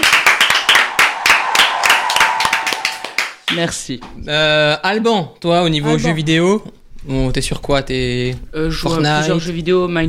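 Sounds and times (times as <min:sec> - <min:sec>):
applause: 0:00.0 - 0:03.7
speech: 0:03.5 - 0:10.0.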